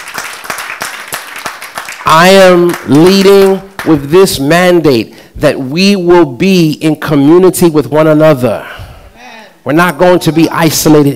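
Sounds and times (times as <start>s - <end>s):
audience applauding: 0.0s - 3.9s
speech: 2.1s - 8.8s, 9.6s - 11.1s.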